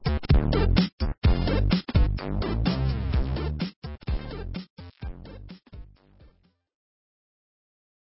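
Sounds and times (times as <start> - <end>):
game soundtrack music: 0.0 - 6.4.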